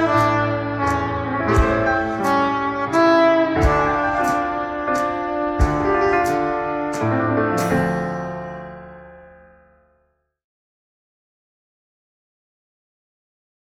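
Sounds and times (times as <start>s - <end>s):
saxophone: 0.0s - 8.5s
drums: 0.0s - 8.6s
piano: 0.0s - 10.3s.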